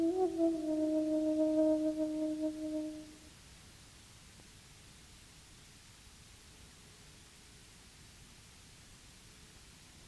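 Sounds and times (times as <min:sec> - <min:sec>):
spontaneous flute playing: 0:00.0 - 0:03.2.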